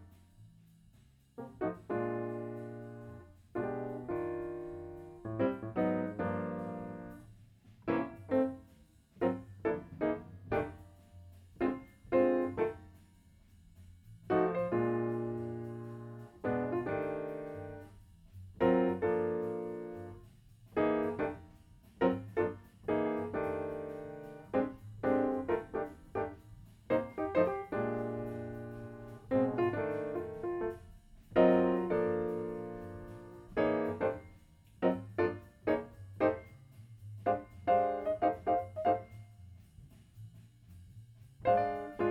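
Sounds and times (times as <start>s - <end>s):
piano note B: 1.4s - 7.3s, 9.2s - 12.9s, 14.3s - 17.9s, 18.6s - 21.5s, 22.0s - 36.5s, 37.3s - 39.2s, 41.4s - 42.0s.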